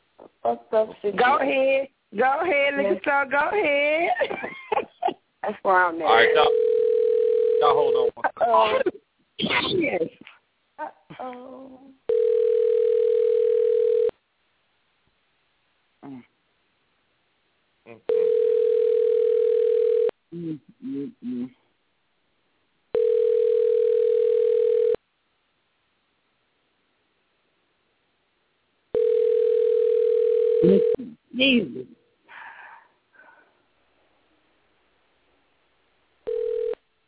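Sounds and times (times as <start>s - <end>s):
speech: 0.5s - 4.6s, 5.5s - 6.6s, 7.6s - 12.0s, 16.0s - 16.3s, 17.9s - 18.4s, 20.3s - 21.6s, 30.7s - 32.0s
voices: 6.0s - 6.5s, 7.6s - 10.2s
telephone ringing unanswered over the line: 6.2s - 8.1s, 12.1s - 14.1s, 18.1s - 20.1s, 23.0s - 25.0s, 29.0s - 31.0s, 36.3s - 36.8s.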